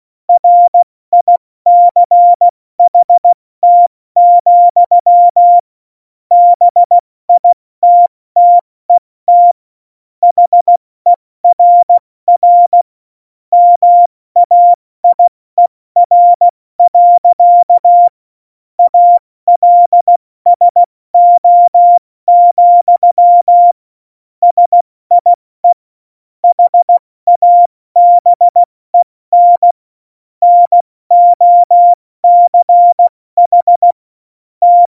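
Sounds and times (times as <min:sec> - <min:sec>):
CW Morse code beeps: 0:00.4 - 0:05.6, 0:06.3 - 0:08.6, 0:09.3 - 0:09.6, 0:10.2 - 0:10.8, 0:11.4 - 0:12.8, 0:13.6 - 0:15.3, 0:16.0 - 0:18.1, 0:18.8 - 0:23.8, 0:24.4 - 0:25.8, 0:26.4 - 0:29.8, 0:30.4 - 0:34.0, 0:34.6 - 0:34.8.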